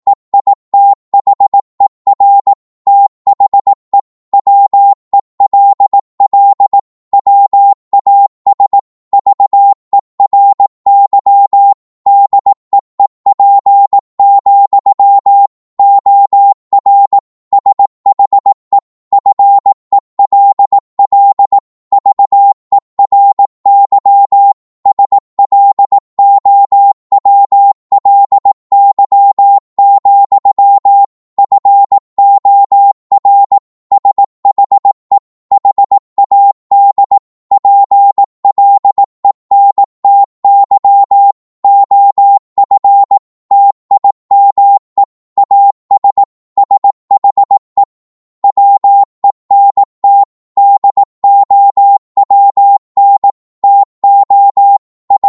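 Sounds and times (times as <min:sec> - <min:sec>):
Morse code beeps: 0:00.1 - 0:55.2.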